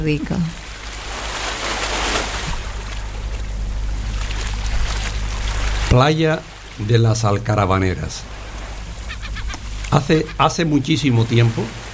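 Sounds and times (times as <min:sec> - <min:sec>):
speech: 0:00.0 - 0:00.6, 0:05.9 - 0:08.3, 0:09.9 - 0:11.8
sea waves: 0:00.0 - 0:11.9
seagulls: 0:09.0 - 0:10.5.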